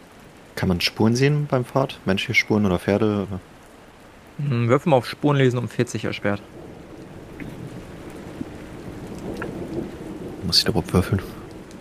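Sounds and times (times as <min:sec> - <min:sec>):
rain pattering in a thunderstorm: 0:00.0 - 0:11.8
speech: 0:00.6 - 0:03.5, 0:04.4 - 0:06.6, 0:10.5 - 0:11.4
low rolling thunder: 0:06.0 - 0:11.8.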